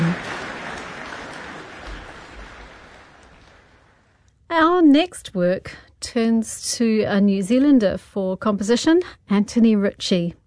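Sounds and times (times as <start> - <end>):
concert audience applause: 0.0 - 4.0
speech: 4.9 - 10.4.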